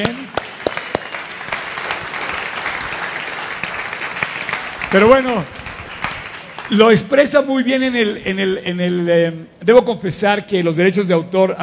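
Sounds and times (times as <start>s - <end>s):
speech: 0.0s - 0.2s, 4.9s - 5.6s, 6.7s - 11.6s
audience clapping: 0.0s - 7.3s.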